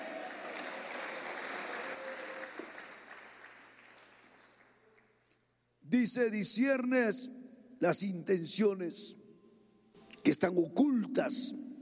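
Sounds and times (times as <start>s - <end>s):
audience applauding: 0.0s - 5.2s
speech: 5.9s - 9.2s, 10.3s - 11.8s.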